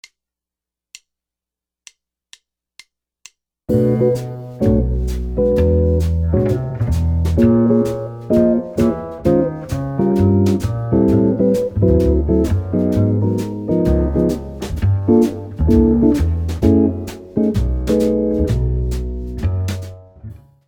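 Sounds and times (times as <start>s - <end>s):
jazz guitar playing rhythm changes: 3.7s - 20.6s.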